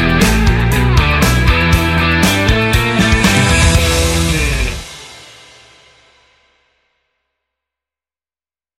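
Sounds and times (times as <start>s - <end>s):
instrumental crime music for background: 0.0s - 5.9s.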